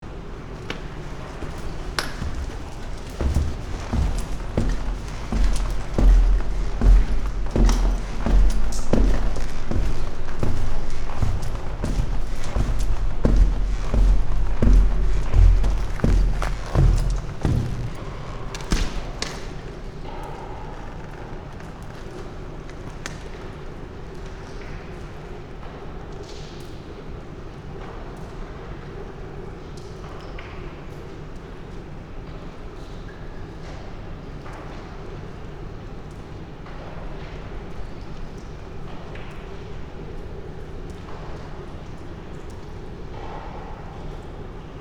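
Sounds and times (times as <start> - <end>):
building site staircase ambience: 0.0 - 22.2.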